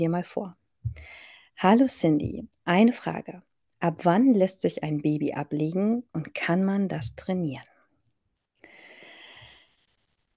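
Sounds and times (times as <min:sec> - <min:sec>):
speech: 0:00.0 - 0:00.6, 0:01.6 - 0:07.7
woman taking a short breathy inhalation: 0:00.9 - 0:01.6, 0:08.6 - 0:10.0.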